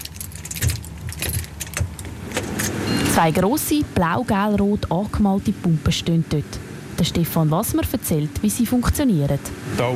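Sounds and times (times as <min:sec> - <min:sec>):
keys jangling as doors are unlocked: 0:00.0 - 0:02.7
lock turning: 0:00.0 - 0:02.8
speech: 0:03.2 - 0:09.9.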